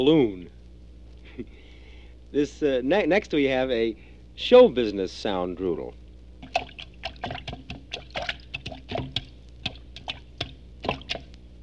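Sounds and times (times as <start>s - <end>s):
speech: 0.0s - 0.5s, 1.4s - 1.6s, 2.3s - 7.4s
tap dancing in a bathtub: 7.1s - 11.2s.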